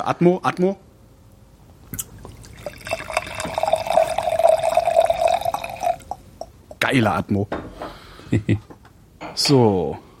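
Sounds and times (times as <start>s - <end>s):
speech: 0.0s - 0.8s, 6.9s - 7.7s, 8.3s - 8.7s, 9.4s - 10.0s
Blaufränkisch red wine poured into a glass: 2.2s - 6.2s.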